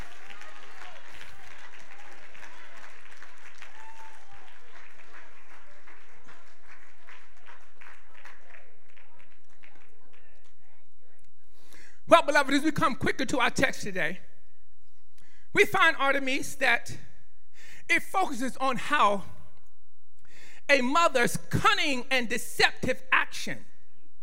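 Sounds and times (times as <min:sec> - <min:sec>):
audience clapping hands: 0:00.0 - 0:10.8
speech: 0:12.2 - 0:14.3, 0:15.6 - 0:17.1, 0:17.9 - 0:19.4, 0:20.7 - 0:23.7.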